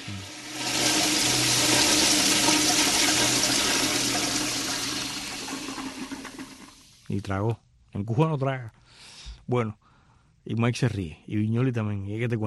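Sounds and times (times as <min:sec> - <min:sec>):
toilet flushing: 0:00.0 - 0:07.1
speech: 0:07.1 - 0:08.8, 0:09.5 - 0:09.8, 0:10.4 - 0:12.4.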